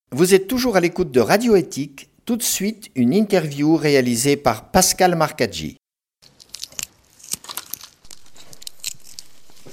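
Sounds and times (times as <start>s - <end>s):
speech: 0.1s - 5.8s
hard-boiled egg shell being cracked and peeled: 6.2s - 9.7s.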